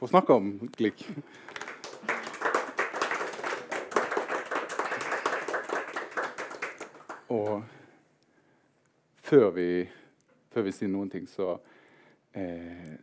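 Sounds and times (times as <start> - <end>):
speech: 0.0 - 1.6, 7.3 - 7.8, 9.3 - 10.0, 10.6 - 11.7, 12.4 - 13.0
audience applause: 1.5 - 7.6.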